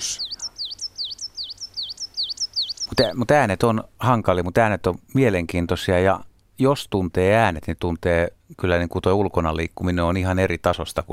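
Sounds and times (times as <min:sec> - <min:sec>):
songbird singing a short high whistled phrase: 0:00.0 - 0:03.1
faint low hum: 0:00.0 - 0:11.1
speech: 0:03.0 - 0:11.1.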